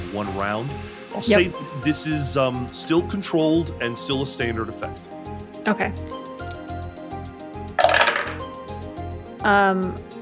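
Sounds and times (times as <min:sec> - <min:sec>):
speech: 0:00.1 - 0:06.2, 0:09.4 - 0:10.1
low rhythmic beat: 0:01.2 - 0:02.0
tonal voice-like sound: 0:01.2 - 0:02.0
dice rattling and clattering: 0:07.8 - 0:08.4.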